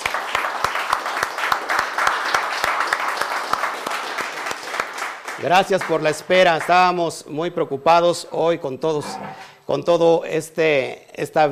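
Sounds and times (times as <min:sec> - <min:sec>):
applause: 0:00.0 - 0:07.0
speech: 0:05.4 - 0:11.4.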